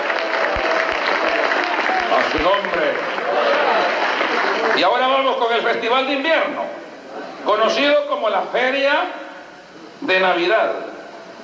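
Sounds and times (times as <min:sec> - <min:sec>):
audience applause: 0:00.0 - 0:05.4
speech: 0:02.3 - 0:03.5, 0:04.8 - 0:06.8, 0:07.4 - 0:09.2, 0:10.0 - 0:10.8.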